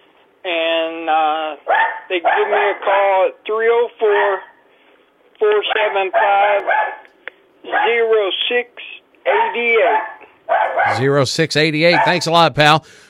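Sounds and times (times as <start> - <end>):
speech: 0.4 - 4.5, 5.4 - 6.9, 7.6 - 13.0
dog barking and yipping: 1.7 - 2.9, 4.1 - 4.6, 5.7 - 7.1, 7.7 - 8.1, 9.3 - 11.1, 11.9 - 12.3.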